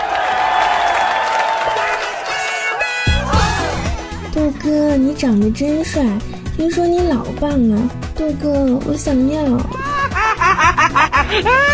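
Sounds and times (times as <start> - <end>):
applause: 0.0 - 3.1
laughter: 3.2 - 4.4, 9.8 - 11.7
speech: 4.7 - 9.8, 11.2 - 11.7.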